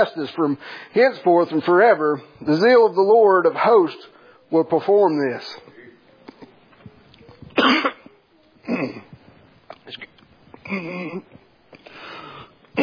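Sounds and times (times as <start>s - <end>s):
speech: 0.0s - 5.7s, 7.6s - 8.0s, 8.7s - 9.1s, 9.9s - 10.1s, 10.7s - 11.4s
man coughing after choking up while reading scripture aloud: 7.6s - 9.1s, 10.6s - 11.4s.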